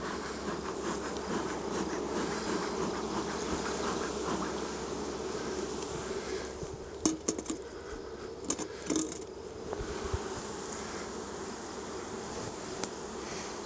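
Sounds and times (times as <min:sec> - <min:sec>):
honeybees buzzing around an open hive: 0:00.2 - 0:13.6
metallic clinks and taps: 0:07.1 - 0:07.7, 0:08.4 - 0:09.3.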